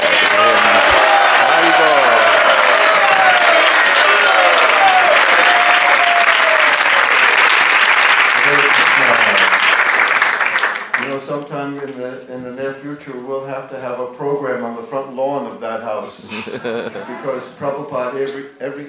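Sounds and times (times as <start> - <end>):
audience applauding loudly: 0.0 - 11.2
speech: 13.0 - 18.8
laughter: 16.2 - 17.8.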